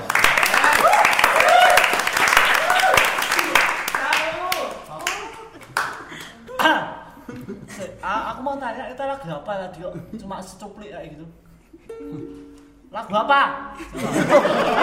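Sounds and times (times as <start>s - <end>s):
hand clapping: 0.0s - 6.8s
laughter: 5.0s - 8.3s, 13.8s - 14.8s
speech: 8.7s - 14.8s.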